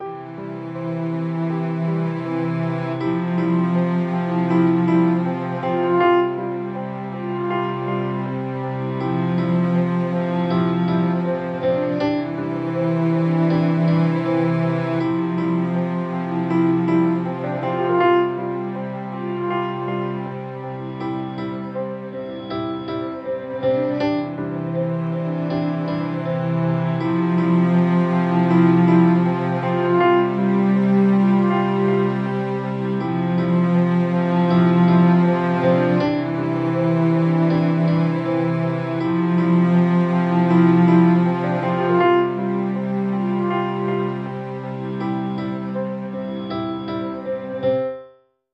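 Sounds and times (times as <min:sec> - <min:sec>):
drifting piano: 0:00.0 - 0:48.4.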